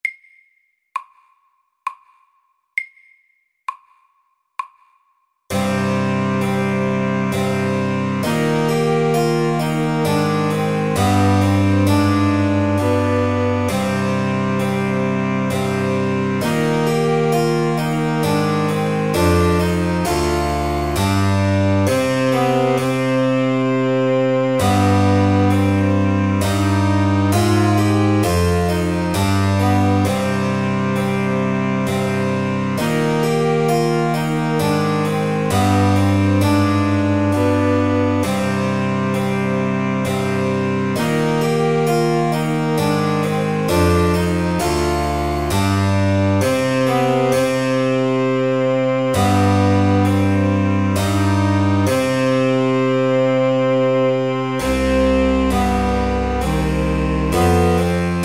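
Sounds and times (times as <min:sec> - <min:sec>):
slow minuet: 0:05.5 - 0:58.2.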